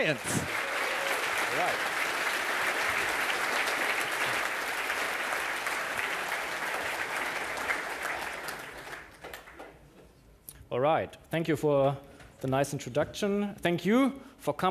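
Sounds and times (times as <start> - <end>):
speech: 0.0 - 0.6, 1.5 - 2.0, 10.7 - 14.6
audience applause: 0.0 - 9.8.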